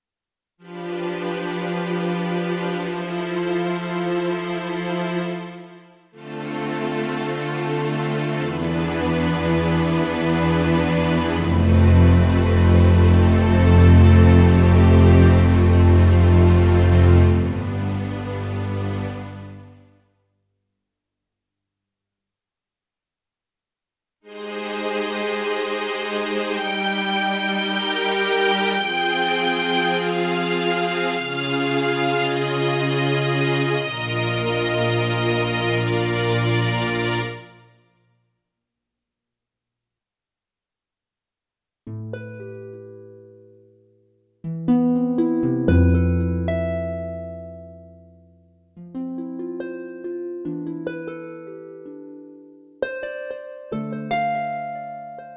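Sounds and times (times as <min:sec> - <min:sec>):
strings: 0:00.6 - 0:19.9, 0:24.3 - 0:37.8, 0:44.5 - 0:55.3.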